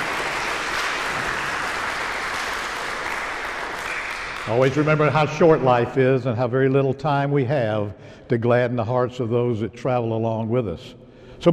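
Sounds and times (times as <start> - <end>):
audience applause: 0.0 - 5.7
speech: 4.5 - 11.5.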